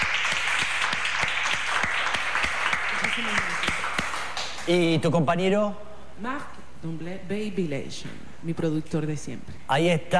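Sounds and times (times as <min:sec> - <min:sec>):
audience applause: 0:00.0 - 0:04.9
speech: 0:03.2 - 0:03.8, 0:04.7 - 0:10.1.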